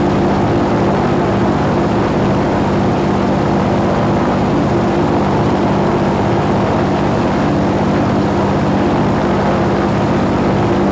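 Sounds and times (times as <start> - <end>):
plane: 0.0 - 10.8.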